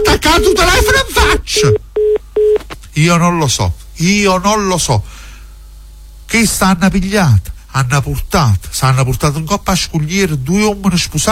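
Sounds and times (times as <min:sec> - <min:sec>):
phone line tone after call hung up: 0:00.0 - 0:02.6
speech: 0:00.2 - 0:01.8, 0:03.0 - 0:05.2, 0:06.3 - 0:11.3.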